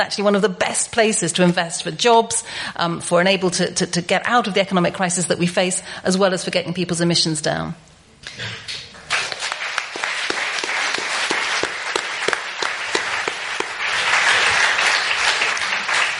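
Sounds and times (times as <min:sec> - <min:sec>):
speech: 0:00.0 - 0:08.8
audience round of applause: 0:09.0 - 0:16.1.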